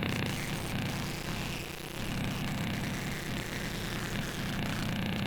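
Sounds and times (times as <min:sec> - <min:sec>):
insects singing: 0:00.1 - 0:05.2
malevolent synth: 0:00.1 - 0:05.2.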